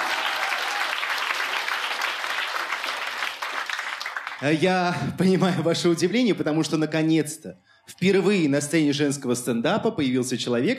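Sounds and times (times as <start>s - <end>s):
audience applause: 0.0s - 4.7s
speech: 4.4s - 10.7s.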